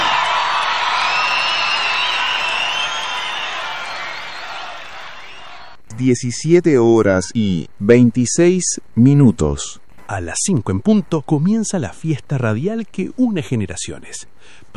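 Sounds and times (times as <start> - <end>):
audience applause and cheering: 0.0 - 5.8
speech: 6.0 - 14.7.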